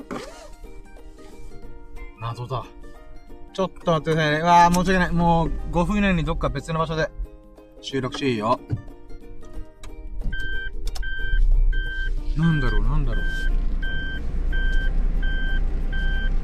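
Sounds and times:
car engine starting: 0.0s - 2.0s, 3.8s - 7.4s, 9.4s - 16.4s
speech: 2.2s - 2.8s, 3.6s - 7.2s, 7.8s - 8.8s, 12.4s - 13.6s
reversing beeps: 10.3s - 16.3s.

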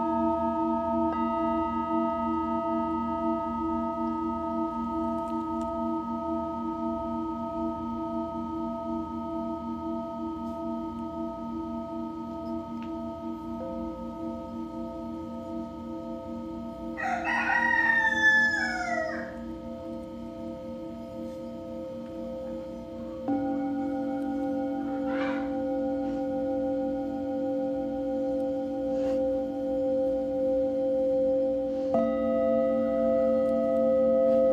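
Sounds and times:
singing bowls humming: 0.0s - 34.5s
rooster crowing: 17.0s - 19.4s, 24.9s - 25.6s.

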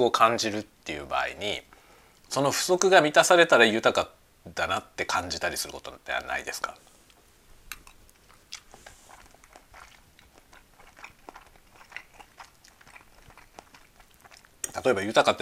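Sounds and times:
speech: 0.0s - 1.7s, 2.3s - 6.9s, 14.8s - 15.3s
chewing food while eating lunch: 5.6s - 15.3s.

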